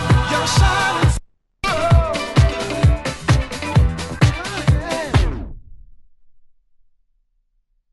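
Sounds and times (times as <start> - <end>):
disco music: 0.0 - 5.5.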